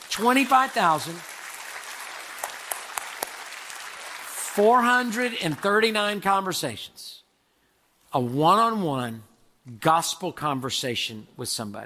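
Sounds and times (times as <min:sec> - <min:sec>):
crowd applauding: 0:00.0 - 0:06.0
speech: 0:00.2 - 0:01.3, 0:04.6 - 0:07.2, 0:08.1 - 0:11.8.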